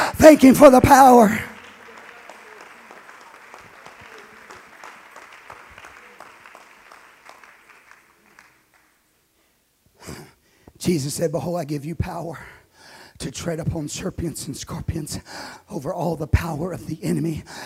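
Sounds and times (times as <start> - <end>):
audience clapping hands: 0.0 - 9.2
speech: 0.2 - 1.5, 10.9 - 12.6, 13.2 - 17.6.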